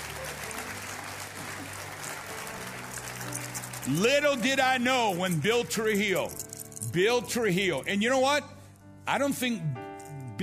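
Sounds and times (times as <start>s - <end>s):
crowd clapping: 0.0s - 5.7s
speech: 3.9s - 8.5s, 9.1s - 9.8s.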